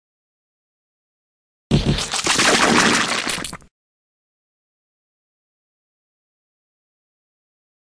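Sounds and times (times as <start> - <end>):
splat: 1.7 - 3.7.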